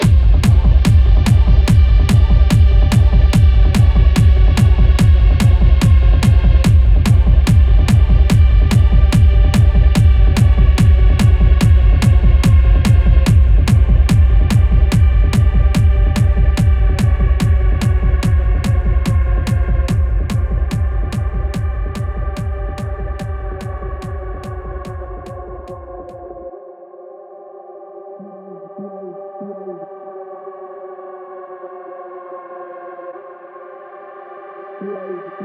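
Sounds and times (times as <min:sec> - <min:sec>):
tribal music: 0:00.0 - 0:26.4.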